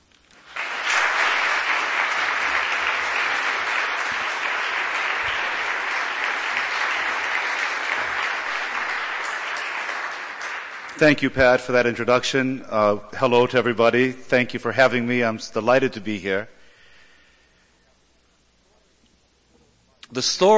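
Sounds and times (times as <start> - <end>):
audience applause welcoming a lecturer before an evening talk: 0.3 - 11.7
speech: 11.0 - 16.6, 20.2 - 20.5.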